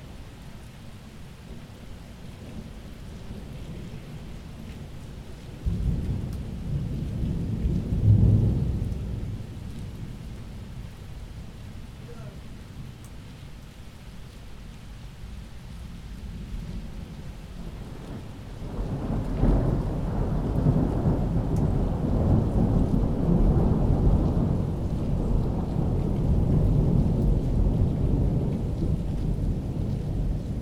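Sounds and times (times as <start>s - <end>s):
thunder in a summer storm: 5.6s - 10.3s, 17.6s - 30.6s.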